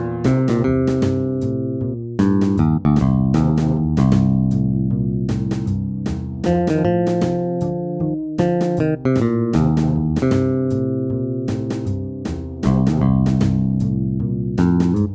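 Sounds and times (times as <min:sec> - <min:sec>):
MIDI blues music: 0:00.0 - 0:15.1.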